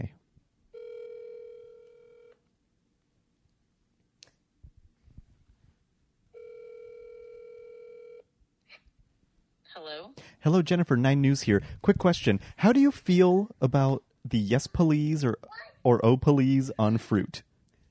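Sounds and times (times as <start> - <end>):
phone ringing: 0.7 - 2.4, 6.3 - 8.3
speech: 9.8 - 17.5.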